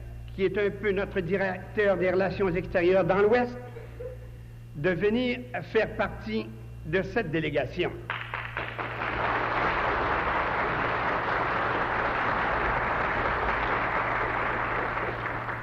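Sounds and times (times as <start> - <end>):
speech: 0.4 - 3.8, 4.8 - 8.1
audience applause: 8.1 - 15.6.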